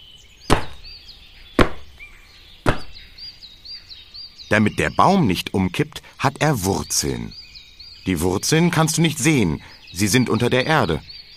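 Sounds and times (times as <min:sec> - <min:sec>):
birds chirping faintly: 0:00.0 - 0:11.3
hard heavy foot stomps on the floor: 0:00.5 - 0:00.8, 0:01.6 - 0:01.9, 0:02.7 - 0:03.0
speech: 0:04.5 - 0:07.4, 0:08.0 - 0:11.1.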